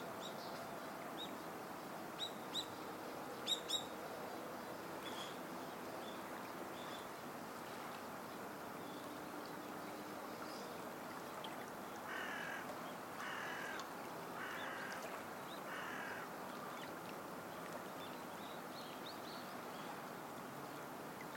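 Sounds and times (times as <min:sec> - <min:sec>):
flowing water rushing: 0:00.0 - 0:21.3
bird cawing: 0:12.1 - 0:13.8, 0:14.4 - 0:15.1, 0:15.7 - 0:16.3.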